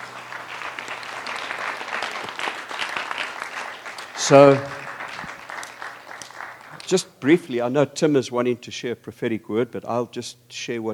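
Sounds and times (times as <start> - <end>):
audience applause: 0.0 - 7.0
speech: 4.2 - 4.7, 6.9 - 10.9.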